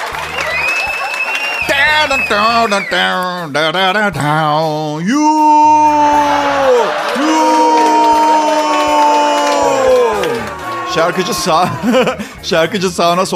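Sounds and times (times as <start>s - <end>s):
laughter: 0.0s - 2.9s, 6.2s - 12.9s
speech: 2.0s - 7.6s, 10.9s - 13.3s
lone voice imitating booing a singer: 5.0s - 12.2s.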